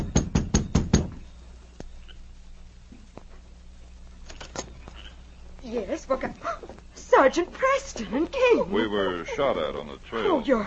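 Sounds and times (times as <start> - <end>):
knocking on a cabin door: 0.0 - 1.2
hum: 0.0 - 10.6
speech: 6.0 - 10.6.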